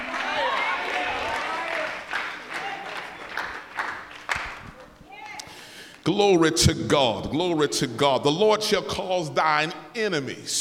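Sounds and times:
audience clapping hands: 0.0 - 5.0
speech: 6.1 - 10.5.

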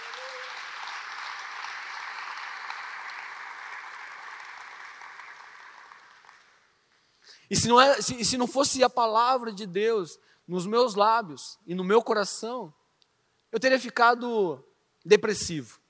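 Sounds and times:
applause from a large crowd: 0.0 - 6.7
speech: 7.5 - 12.8, 13.5 - 15.8.

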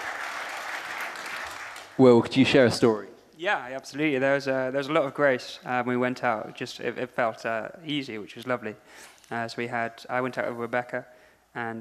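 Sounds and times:
group of people applauding: 0.0 - 2.2
speech: 2.0 - 11.7.

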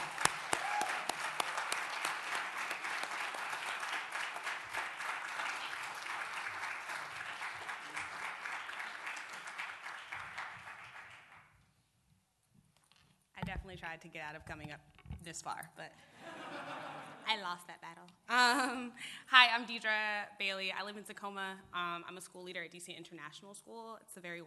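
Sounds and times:
audience applause welcoming a speaker at a community gathering: 0.0 - 11.4
speech: 13.5 - 24.4
laughter: 16.1 - 17.3.

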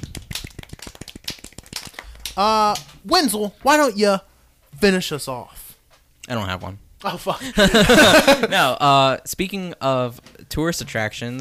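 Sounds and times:
small group clapping: 0.0 - 3.0
speech: 2.4 - 5.6, 6.3 - 11.4
laughter: 7.4 - 8.8.

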